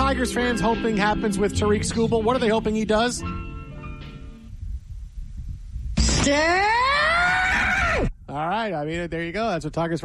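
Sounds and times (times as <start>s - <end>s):
speech: 0.1s - 3.5s, 6.3s - 6.8s, 8.3s - 10.0s
caller screaming: 6.2s - 8.1s.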